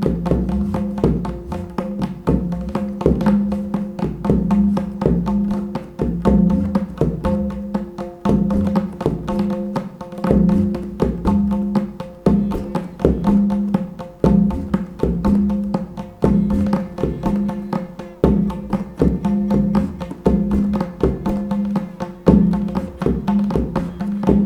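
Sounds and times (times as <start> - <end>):
tabla playing: 0.0 - 24.4
sitar drone: 12.3 - 13.8, 16.1 - 24.4.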